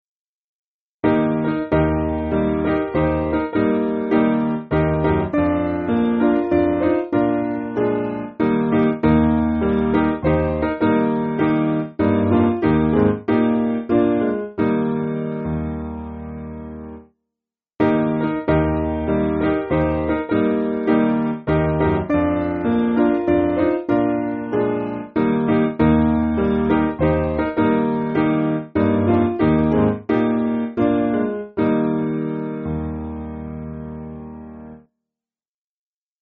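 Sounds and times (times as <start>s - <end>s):
piano: 1.0s - 17.1s, 17.8s - 34.9s.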